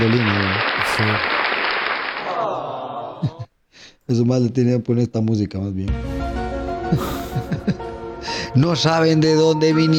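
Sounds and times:
speech: 0.0 - 1.4, 4.1 - 6.3, 6.9 - 9.9
applause: 0.0 - 2.8
laughter: 2.2 - 3.5, 6.9 - 7.9.

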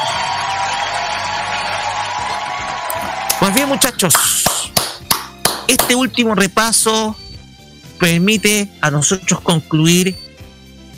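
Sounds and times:
audience applause and cheering: 0.0 - 5.7
speech: 3.4 - 4.4, 5.7 - 7.2, 8.0 - 10.2.

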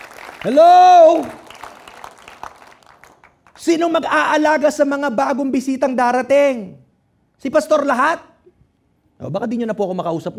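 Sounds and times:
audience applause: 0.0 - 3.6
speech: 0.4 - 1.4, 3.6 - 6.8, 7.4 - 8.3, 9.2 - 10.3.

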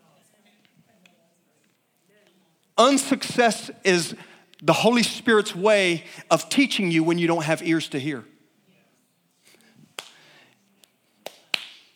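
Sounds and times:
speech: 2.8 - 8.3
person clapping: 11.2 - 11.9.

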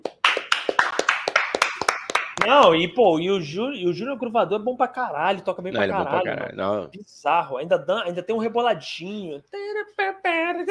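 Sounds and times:
applause, hands clapping: 0.0 - 2.8
speech: 2.4 - 10.6.

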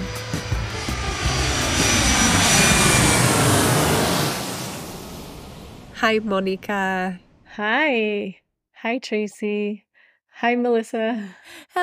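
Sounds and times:
airplane taking off: 0.0 - 6.7
speech: 6.0 - 9.8, 10.4 - 11.8.

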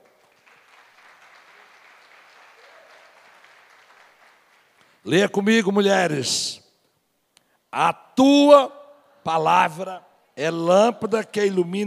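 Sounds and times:
audience applauding: 0.0 - 5.0
speech: 5.0 - 6.6, 7.7 - 11.8.

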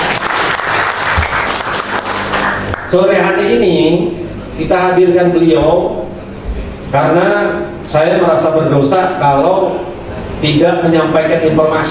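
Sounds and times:
audience applause at a talk: 0.0 - 2.9
speech: 2.9 - 6.0, 6.9 - 11.8.

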